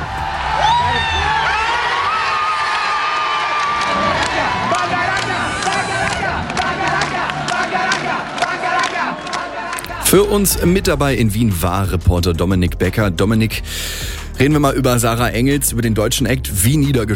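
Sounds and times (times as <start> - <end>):
stadium crowd cheering: 0.0 - 10.6
speech: 10.1 - 17.1.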